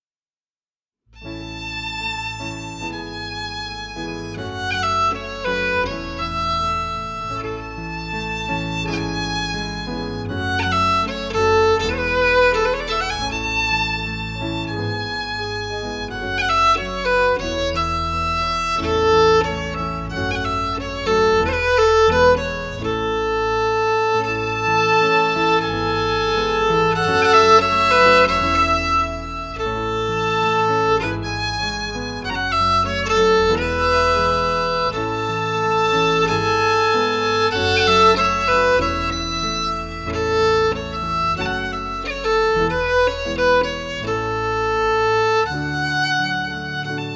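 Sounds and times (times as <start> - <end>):
piano: 1.1 - 47.1
fiddle: 1.2 - 47.1.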